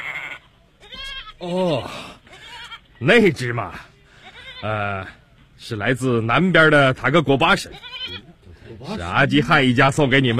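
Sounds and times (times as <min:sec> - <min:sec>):
goats bleating: 0:00.0 - 0:01.5, 0:02.2 - 0:02.8, 0:04.2 - 0:05.2, 0:07.7 - 0:08.4
speech: 0:01.4 - 0:02.2, 0:03.0 - 0:03.9, 0:04.6 - 0:10.3.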